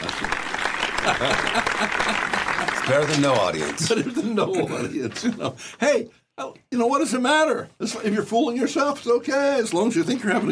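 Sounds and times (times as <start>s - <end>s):
canned studio audience applause: 0.0s - 4.2s
laughter: 0.0s - 5.8s
speech: 1.0s - 10.5s.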